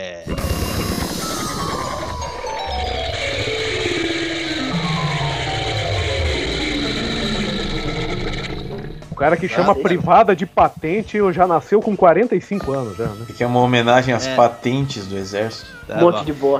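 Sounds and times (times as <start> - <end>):
jingle introducing a patent news segment: 0.2 - 7.4
speech: 9.2 - 16.5.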